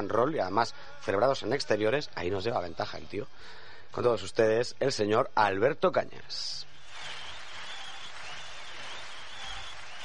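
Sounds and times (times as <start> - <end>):
speech: 0.0 - 6.7
applause: 6.8 - 10.0.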